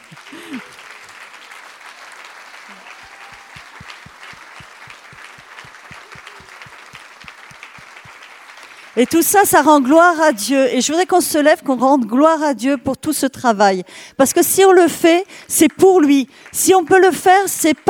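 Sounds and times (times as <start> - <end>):
crowd applauding in rhythm: 0.0 - 10.4, 15.9 - 17.8
speech: 9.0 - 17.8.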